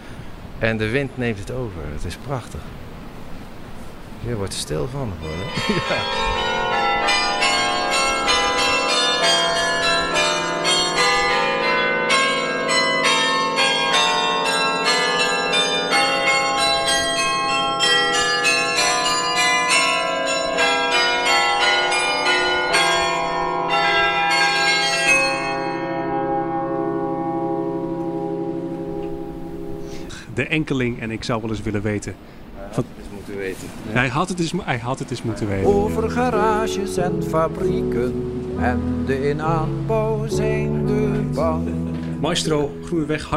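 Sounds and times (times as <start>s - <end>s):
speech: 0.6s - 2.9s, 4.2s - 6.4s, 30.5s - 40.6s, 41.4s - 43.3s
church bells ringing: 4.3s - 30.2s, 35.0s - 43.3s
laughter: 5.2s - 6.6s.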